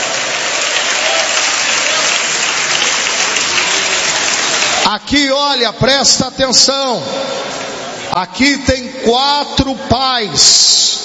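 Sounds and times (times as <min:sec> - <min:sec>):
audience applause: 0:00.0 - 0:04.9
speech: 0:04.9 - 0:11.0.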